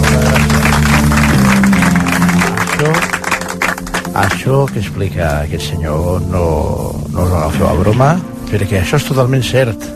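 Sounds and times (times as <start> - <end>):
audience applauding: 0.0 - 4.9
speech: 4.2 - 9.9.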